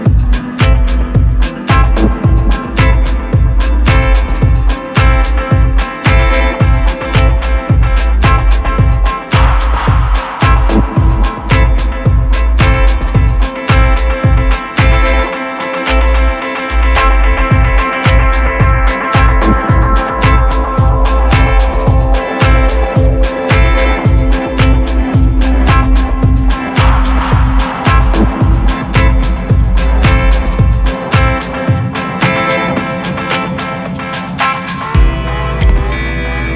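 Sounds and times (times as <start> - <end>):
soundscape guitars: 0.0 - 36.5.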